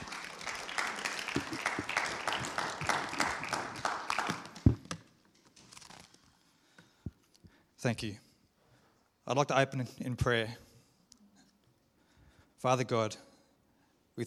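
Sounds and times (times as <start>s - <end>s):
audience applause: 0.0s - 5.0s
speech: 7.8s - 8.2s, 9.3s - 10.6s, 12.6s - 13.2s.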